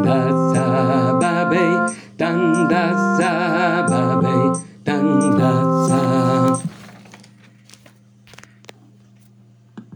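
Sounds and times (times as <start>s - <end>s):
contralto singing: 0.0s - 6.7s.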